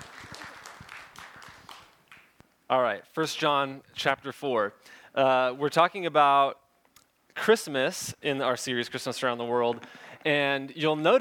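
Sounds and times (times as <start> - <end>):
audience applause: 0.0 - 2.3
speech: 2.7 - 6.6, 7.4 - 11.1.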